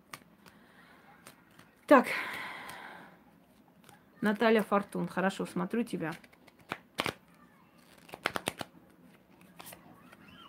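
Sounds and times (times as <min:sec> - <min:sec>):
Gypsy-style fortune-telling cards being shuffled and drawn: 0:00.0 - 0:01.9, 0:03.4 - 0:05.0, 0:05.9 - 0:10.4
speech: 0:01.9 - 0:02.4, 0:04.2 - 0:06.3.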